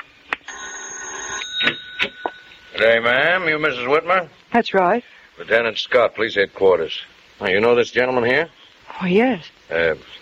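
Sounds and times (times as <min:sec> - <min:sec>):
bell ringing: 0:00.5 - 0:04.0
speech: 0:02.8 - 0:10.2.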